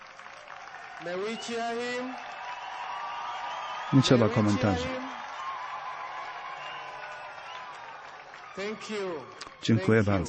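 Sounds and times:
audience applause: 0:00.0 - 0:10.2
speech: 0:01.0 - 0:02.4, 0:03.9 - 0:05.0, 0:08.6 - 0:10.2.

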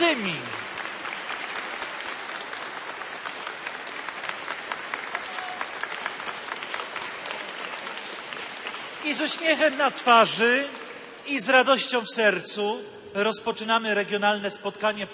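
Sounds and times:
warm applause from audience: 0:00.0 - 0:11.3
speech: 0:09.1 - 0:15.1.

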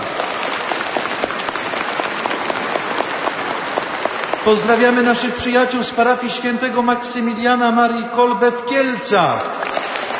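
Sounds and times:
audience applause: 0:00.0 - 0:05.5, 0:09.2 - 0:10.1
speech: 0:04.4 - 0:09.6.

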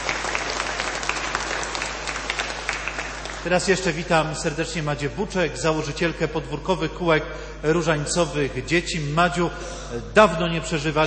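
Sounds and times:
audience applause: 0:00.0 - 0:03.9
speech: 0:03.4 - 0:11.0.

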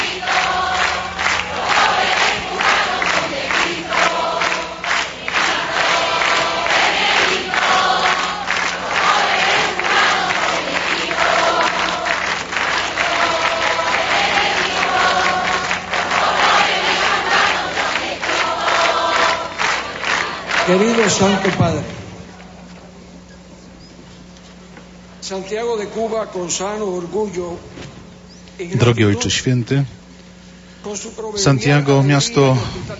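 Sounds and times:
crowd in a square in Santiago de Cuba singing for the Pope: 0:00.0 - 0:22.2
rhythmic clapping: 0:00.0 - 0:22.5
speech: 0:20.7 - 0:22.0, 0:25.3 - 0:27.8, 0:28.6 - 0:30.0, 0:30.9 - 0:32.9.

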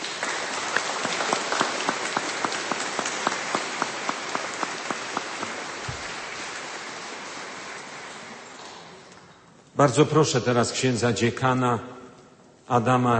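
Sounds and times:
audience applause with rhythmic claps: 0:00.0 - 0:09.1
speech: 0:09.8 - 0:12.0, 0:12.7 - 0:13.1.

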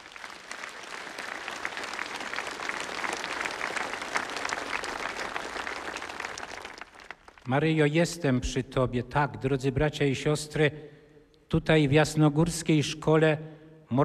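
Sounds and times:
audience applause: 0:00.0 - 0:07.5
speech: 0:07.5 - 0:10.9, 0:11.5 - 0:14.0.

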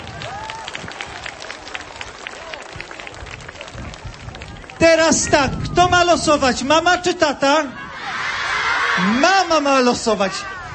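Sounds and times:
audience applause for a family at a lively event: 0:00.0 - 0:05.5
speech: 0:05.0 - 0:07.8, 0:09.0 - 0:10.5.

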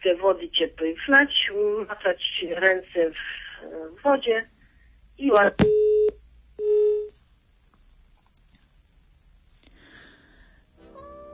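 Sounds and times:
speech: 0:00.0 - 0:04.6, 0:05.2 - 0:06.0
telephone busy tone after dropped call: 0:05.6 - 0:07.1.

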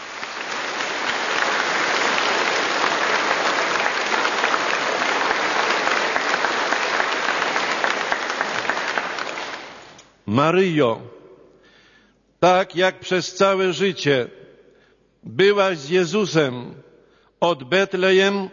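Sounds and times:
audience applause in church: 0:00.0 - 0:10.0
speech: 0:10.3 - 0:11.1, 0:12.4 - 0:14.4, 0:15.2 - 0:16.8, 0:17.4 - 0:18.5.

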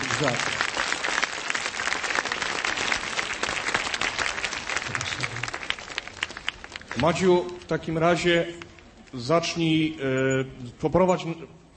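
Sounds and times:
audience applause: 0:00.0 - 0:08.0
speech: 0:00.2 - 0:00.6, 0:07.0 - 0:11.6.

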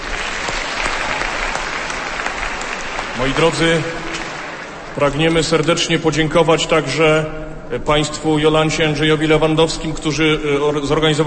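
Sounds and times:
audience applause for performers: 0:00.0 - 0:05.7
speech: 0:03.2 - 0:04.0, 0:05.0 - 0:11.2.

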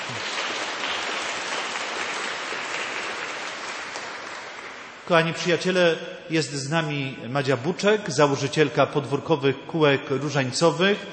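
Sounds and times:
audience applause: 0:00.0 - 0:05.1
speech: 0:05.1 - 0:11.1.

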